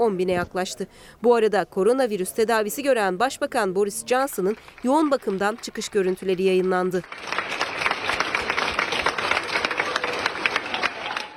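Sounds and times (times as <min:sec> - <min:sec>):
speech: 0:00.0 - 0:07.6
health workers applauding: 0:04.0 - 0:11.3.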